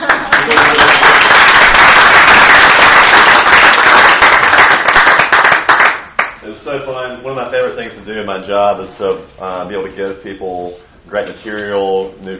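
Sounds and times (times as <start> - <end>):
crowd applause: 0.0 - 6.3
speech: 7.2 - 12.3.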